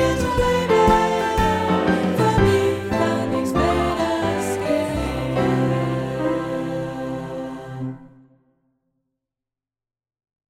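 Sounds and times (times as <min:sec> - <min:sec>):
mixed choir instrumental: 0:00.0 - 0:08.3.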